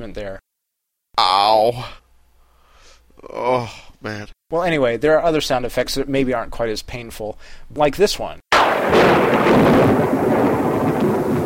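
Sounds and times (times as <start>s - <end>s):
speech: 0.0s - 0.4s, 1.2s - 2.0s, 3.2s - 10.2s
Castle Thunder sound effect recorded for Frankenstein (1931): 8.6s - 11.4s.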